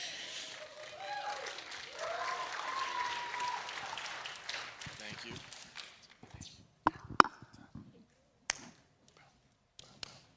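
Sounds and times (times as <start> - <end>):
crowd audience applause and cheering: 0.0 - 6.0.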